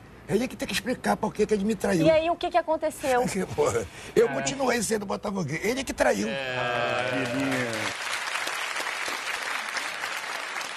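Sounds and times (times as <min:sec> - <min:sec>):
speech: 0:00.3 - 0:08.0
audience applause: 0:06.5 - 0:10.7
laughter: 0:06.6 - 0:07.9.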